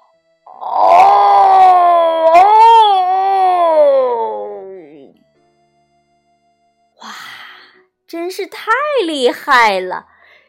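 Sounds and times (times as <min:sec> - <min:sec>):
human voice imitating a lion's roar: 0:00.5 - 0:05.1
speech: 0:08.4 - 0:10.1.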